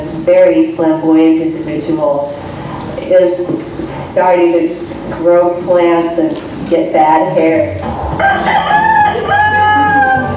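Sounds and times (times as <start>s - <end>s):
speech: 0.2s - 2.5s, 3.1s - 8.6s
rooster on an organic farm crowing: 8.0s - 10.3s.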